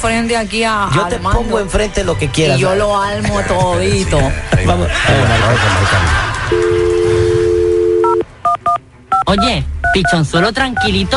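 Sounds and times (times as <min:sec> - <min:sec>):
speech: 0:00.0 - 0:06.7, 0:09.3 - 0:11.1
laughter: 0:04.6 - 0:07.1
steady phone dial tone: 0:06.5 - 0:08.2
phone number being dialed, DTMF tones: 0:06.5 - 0:11.1.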